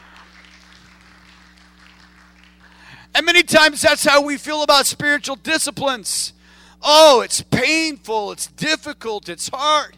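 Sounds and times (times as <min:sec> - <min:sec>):
audience clapping: 0:00.0 - 0:03.0
speech: 0:03.2 - 0:09.9.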